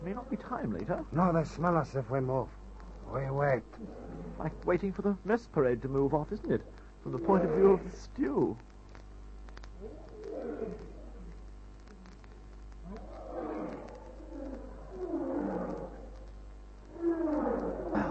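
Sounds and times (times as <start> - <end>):
speech: 0.0 - 8.7
lions roaring: 2.9 - 4.8, 6.4 - 8.0, 9.8 - 11.3, 12.8 - 16.2, 16.9 - 18.0.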